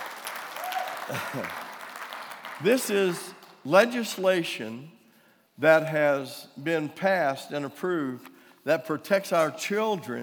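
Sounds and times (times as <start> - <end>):
audience applauding a speaker: 0.0 - 3.7
speech: 1.1 - 1.6, 2.6 - 5.0, 5.6 - 10.2.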